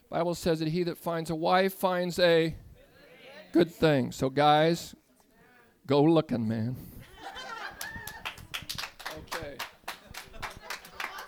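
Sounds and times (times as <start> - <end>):
speech: 0.1 - 2.6, 3.5 - 5.0, 5.9 - 7.0
laughter: 7.0 - 8.5, 9.9 - 11.2
women clapping: 7.7 - 11.2.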